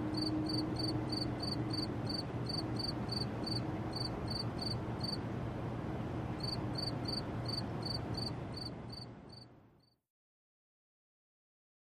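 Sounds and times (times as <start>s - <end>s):
cricket chirping in a city setting: 0.1s - 5.2s, 6.4s - 10.0s.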